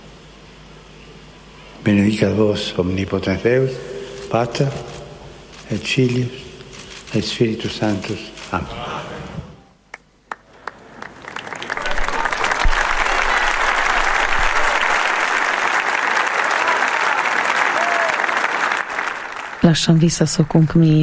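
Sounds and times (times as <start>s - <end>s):
speech: 1.8s - 5.0s, 5.7s - 6.5s, 7.1s - 9.0s, 19.7s - 21.0s
large crowd applause: 10.3s - 20.0s.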